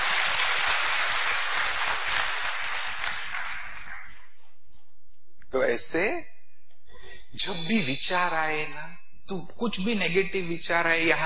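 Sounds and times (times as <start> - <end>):
audience clapping: 0.0 - 4.4
speech: 5.5 - 6.3, 7.3 - 11.2.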